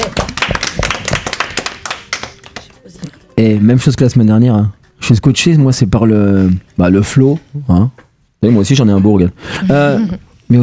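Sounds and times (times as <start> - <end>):
audience clapping: 0.0 - 3.0
speech: 3.4 - 10.6.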